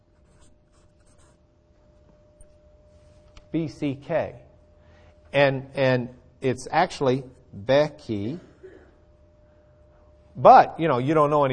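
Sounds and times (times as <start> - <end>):
handwriting of letters: 0.2 - 1.4
speech: 3.5 - 4.5, 5.3 - 8.5, 10.4 - 11.5.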